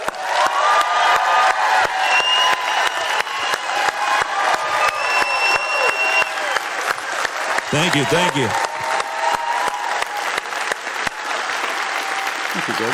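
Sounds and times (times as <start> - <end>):
live audience applauding a guest's entrance: 0.0 - 12.9
live audience cheering and whooping: 0.0 - 12.9
whistles from the crowd: 2.0 - 3.8, 4.7 - 6.7
speech: 7.7 - 8.7, 12.7 - 12.9.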